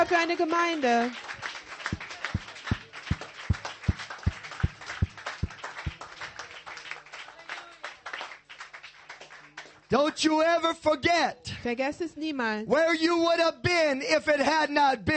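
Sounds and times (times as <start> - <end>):
speech: 0.0 - 1.4, 9.9 - 15.1
scattered clapping and crowd noise: 0.0 - 6.8
audience clapping hands in steady rhythm: 0.0 - 9.8.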